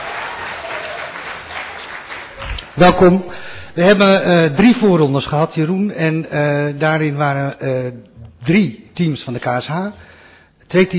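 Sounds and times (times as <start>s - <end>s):
audience applause welcoming a municipal alderman standing in as chairman: 0.0s - 2.8s
speech: 2.8s - 10.1s, 10.7s - 10.9s.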